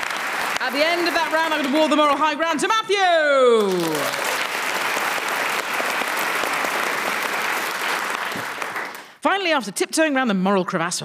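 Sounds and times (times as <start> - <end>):
audience applause: 0.0 - 2.2, 3.6 - 9.2
speech: 0.6 - 4.3, 9.2 - 11.0.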